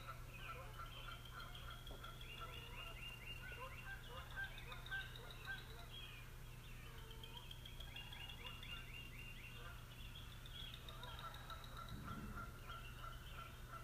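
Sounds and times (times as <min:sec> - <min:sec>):
morning birds singing: 0:00.0 - 0:13.8.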